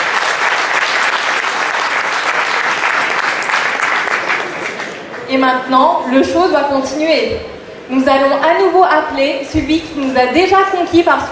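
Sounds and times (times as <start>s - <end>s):
audience applause: 0.0s - 5.3s
speech: 5.3s - 11.3s.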